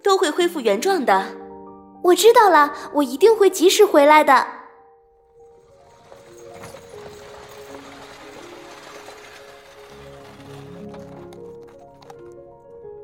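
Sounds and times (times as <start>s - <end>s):
speech: 0.0s - 1.4s, 2.0s - 4.6s
soft music: 0.0s - 13.0s
horse-drawn carriage hooves clip-clopping: 5.3s - 12.8s.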